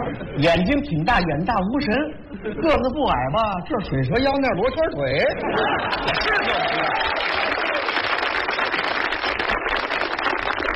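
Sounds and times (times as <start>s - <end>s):
speech: 0.1s - 7.5s
laughter: 2.3s - 3.0s, 5.2s - 7.8s
large audience applause: 5.9s - 10.7s.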